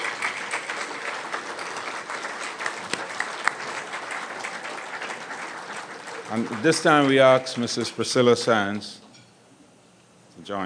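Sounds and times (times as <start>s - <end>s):
round of applause: 0.0s - 8.5s
speech: 6.3s - 9.0s, 10.5s - 10.6s.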